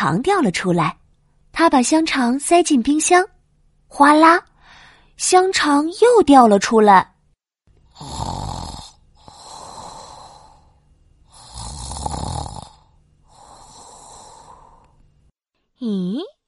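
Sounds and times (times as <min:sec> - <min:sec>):
speech: 0:00.0 - 0:03.3, 0:03.9 - 0:04.5, 0:05.2 - 0:07.1, 0:15.8 - 0:16.4
snoring: 0:07.9 - 0:15.0.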